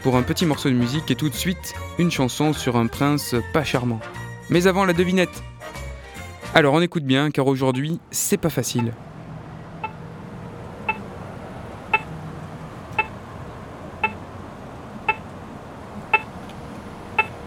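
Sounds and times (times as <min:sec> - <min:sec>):
speech: 0:00.0 - 0:05.8, 0:06.5 - 0:09.1
low rumble of street traffic: 0:07.4 - 0:17.4
accessible pedestrian crossing signal beeping: 0:07.7 - 0:08.0, 0:08.7 - 0:09.0, 0:09.8 - 0:10.1, 0:10.8 - 0:11.1, 0:11.9 - 0:12.2, 0:12.9 - 0:13.2, 0:14.0 - 0:14.2, 0:15.0 - 0:15.3, 0:16.1 - 0:16.4, 0:17.1 - 0:17.4.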